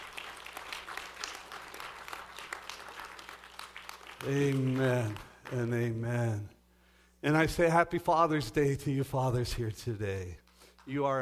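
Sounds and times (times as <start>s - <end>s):
crowd clapping: 0.0s - 6.1s, 10.5s - 11.2s
speech: 4.2s - 6.6s, 7.2s - 11.2s.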